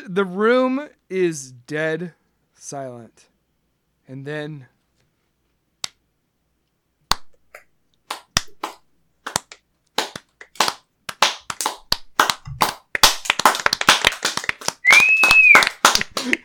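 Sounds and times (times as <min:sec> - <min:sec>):
speech: 0:00.1 - 0:03.3, 0:04.1 - 0:04.7
crowd clapping to celebrate a new head of the marketing department: 0:08.1 - 0:16.4
whistle: 0:14.8 - 0:15.7.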